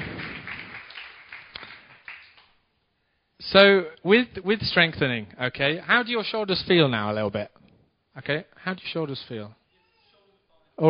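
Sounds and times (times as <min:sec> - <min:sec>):
small group clapping: 0:00.0 - 0:02.6
speech: 0:03.4 - 0:07.6, 0:08.2 - 0:09.6.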